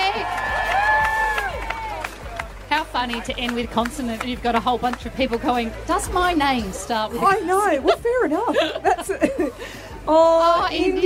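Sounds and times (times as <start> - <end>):
audience applause and cheering: 0.0 - 6.2
speech: 3.0 - 11.0
laughter: 7.2 - 10.0.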